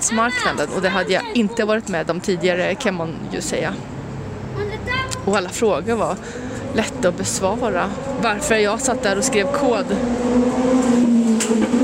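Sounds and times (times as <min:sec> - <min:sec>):
motorcycle passing by: 0:00.0 - 0:11.8
speech: 0:00.1 - 0:04.0, 0:05.2 - 0:11.8.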